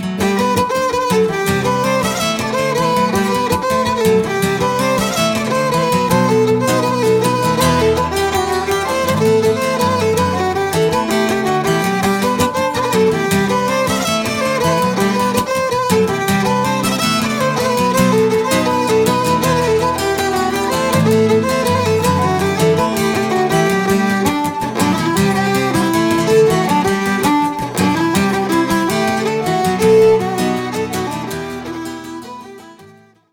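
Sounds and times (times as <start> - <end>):
suite plinn folk dance tune: 0.2 - 33.1.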